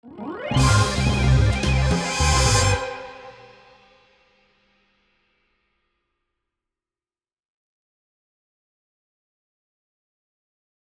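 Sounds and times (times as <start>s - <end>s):
transition sound: 0.5s - 4.1s.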